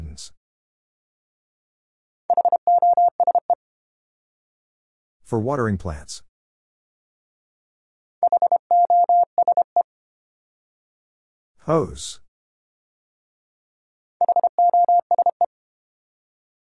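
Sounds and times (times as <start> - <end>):
morse code at 25 words per minute: 2.3 - 3.6, 8.2 - 9.8, 14.2 - 15.5.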